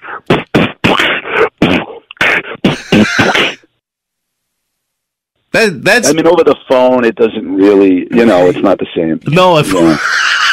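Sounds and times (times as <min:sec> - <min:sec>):
person beatboxing: 0:00.0 - 0:03.6
speech: 0:05.6 - 0:10.2
laughter: 0:09.8 - 0:10.5.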